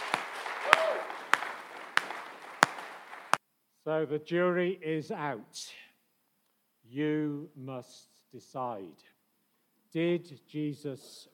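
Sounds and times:
audience applause: 0.0 - 3.4
speech: 3.9 - 5.8, 6.9 - 9.1, 9.9 - 11.3.

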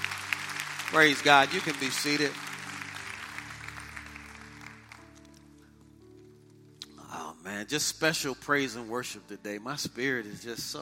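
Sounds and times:
round of applause for veterans: 0.0 - 5.6
speech: 0.9 - 2.4, 7.6 - 10.8.

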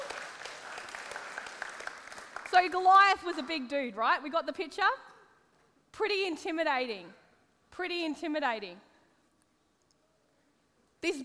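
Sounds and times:
audience clapping: 0.0 - 3.6
speech: 2.5 - 5.1, 6.0 - 7.2, 7.8 - 8.9, 11.0 - 11.2.

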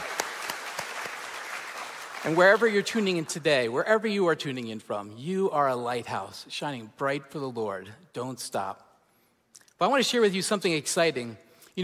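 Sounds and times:
crowd cheering: 0.0 - 2.4
crowd applause: 0.0 - 2.7
speech: 2.2 - 8.9, 9.8 - 11.8.

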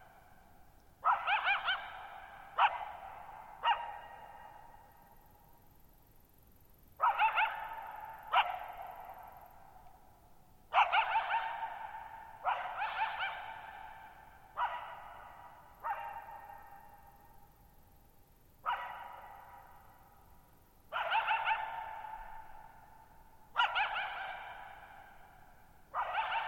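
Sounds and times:
coyote barking: 1.0 - 5.0, 7.0 - 9.3, 10.7 - 17.2, 18.6 - 20.1, 20.9 - 22.9, 23.5 - 26.4.

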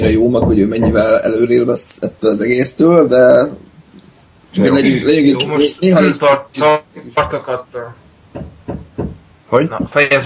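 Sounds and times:
neighbour hammering: 0.0 - 1.3, 8.3 - 10.1
speech: 0.0 - 3.7, 4.5 - 8.5, 9.5 - 10.2.

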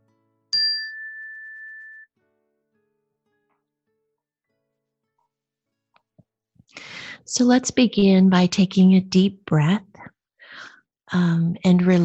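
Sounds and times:
meditation chime ringing: 0.6 - 2.1
speech: 6.8 - 10.1, 11.1 - 12.0.

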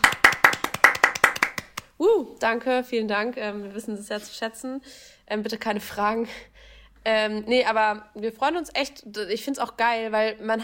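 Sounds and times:
hand clapping: 0.0 - 1.9
speech: 2.4 - 10.6.

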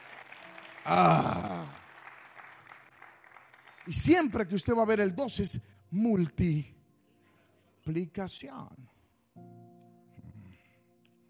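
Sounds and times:
audience applause: 0.0 - 4.8
speech: 0.8 - 1.5, 3.9 - 6.7, 7.9 - 8.9.

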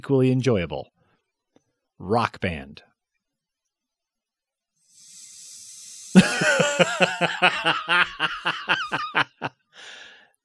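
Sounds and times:
speech: 0.0 - 1.0, 2.0 - 2.9, 6.2 - 10.0
loud hissing inhale: 4.8 - 8.0, 9.8 - 10.3
snickering laughter: 6.1 - 9.6.

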